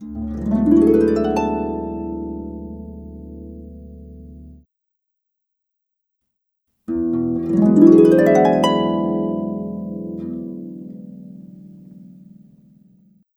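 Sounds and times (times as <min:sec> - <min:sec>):
cinematic harp: 0:00.0 - 0:04.6, 0:06.9 - 0:12.9.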